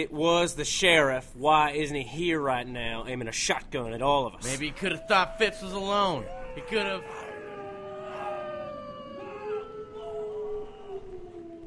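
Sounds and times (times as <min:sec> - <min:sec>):
speech: 0:00.0 - 0:07.2
wolves howling: 0:04.4 - 0:11.6.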